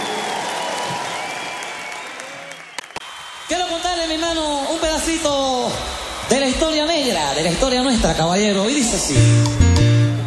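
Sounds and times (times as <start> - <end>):
audience applause: 0.0 - 8.2
speech: 3.5 - 9.6.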